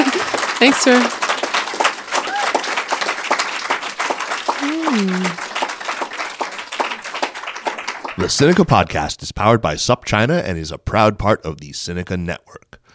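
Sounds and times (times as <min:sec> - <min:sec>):
audience applause: 0:00.0 - 0:08.8
speech: 0:00.6 - 0:01.2, 0:04.9 - 0:05.4, 0:08.2 - 0:12.9.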